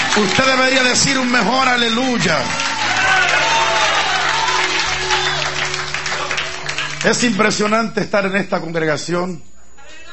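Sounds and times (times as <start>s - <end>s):
audience applause: 0.0s - 7.8s
speech: 0.2s - 4.0s, 7.0s - 9.5s.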